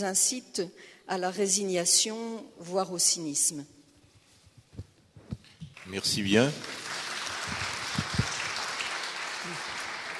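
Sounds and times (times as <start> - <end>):
speech: 0.0 - 3.8, 5.9 - 6.8
audience applause: 5.8 - 10.1.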